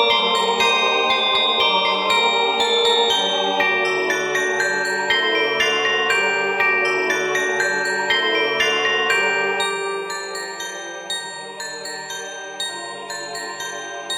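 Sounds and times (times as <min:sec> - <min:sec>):
handbells ringing: 0:00.0 - 0:14.1.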